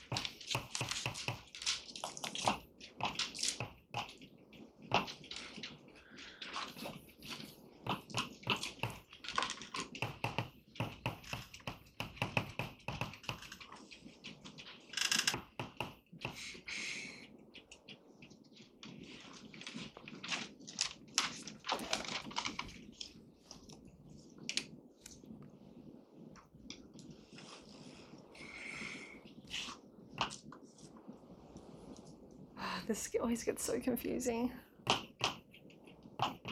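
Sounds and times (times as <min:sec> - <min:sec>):
writing out a definition by hand: 0:00.0 - 0:32.3, 0:34.8 - 0:36.5
speech: 0:32.9 - 0:34.6.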